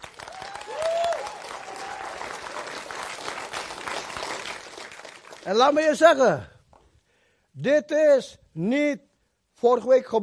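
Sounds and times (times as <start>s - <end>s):
audience applause: 0.0s - 5.7s
speech: 5.5s - 6.5s, 7.6s - 10.2s.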